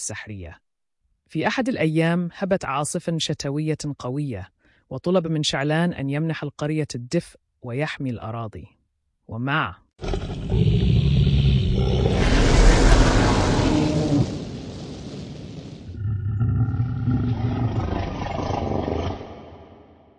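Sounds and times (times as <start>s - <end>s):
speech: 0.0s - 0.6s, 1.3s - 10.6s
dragon roaring, sound effect in a story: 10.0s - 15.1s, 15.9s - 19.9s.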